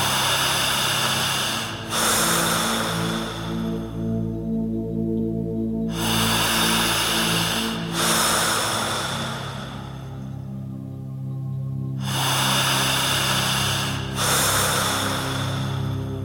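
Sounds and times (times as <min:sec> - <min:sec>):
slow deep breathing: 0:00.0 - 0:16.2.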